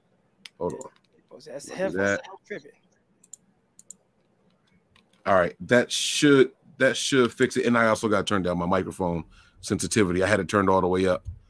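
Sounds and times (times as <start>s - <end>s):
computer clicks while adjusting microphone settings: 0.4s - 1.3s, 3.2s - 5.2s
speech: 0.6s - 2.8s, 5.2s - 11.4s.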